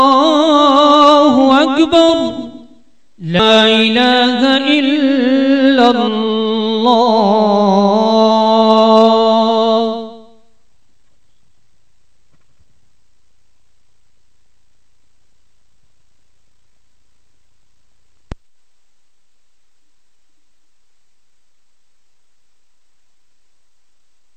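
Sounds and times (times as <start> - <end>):
call to prayer: 0.0 - 10.4.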